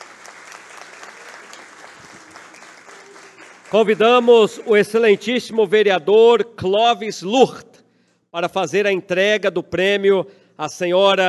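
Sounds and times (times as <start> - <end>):
audience applause: 0.0 - 5.4
speech: 3.7 - 7.7, 8.4 - 11.2.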